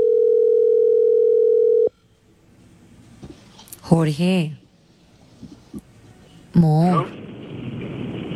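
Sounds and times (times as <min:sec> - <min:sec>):
telephone dial tone while calling: 0:00.0 - 0:01.9
speech: 0:03.9 - 0:04.6, 0:06.6 - 0:07.2.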